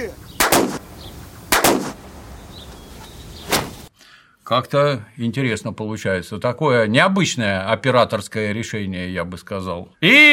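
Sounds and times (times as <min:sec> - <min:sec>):
Parabellum pistol gunshot: 0:00.4 - 0:00.8, 0:01.5 - 0:02.0
speech: 0:04.5 - 0:10.3.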